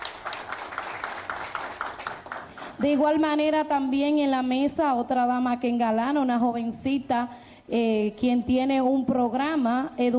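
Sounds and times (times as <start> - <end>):
loud applause: 0.0 - 2.8
speech: 2.8 - 10.1.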